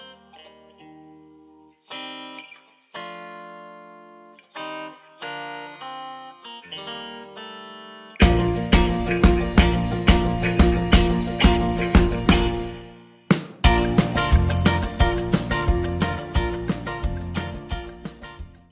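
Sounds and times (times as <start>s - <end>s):
backing track in B-flat without backing vocals: 8.2s - 18.7s.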